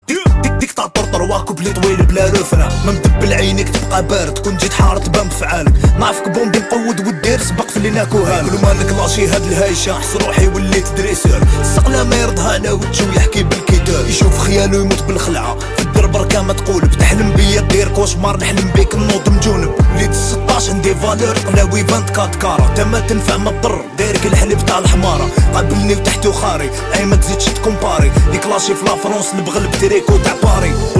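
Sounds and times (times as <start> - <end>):
trap beat: 0.0 - 30.9.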